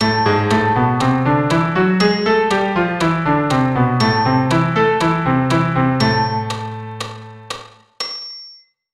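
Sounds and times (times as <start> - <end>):
A minor melody: 0.0 - 7.5.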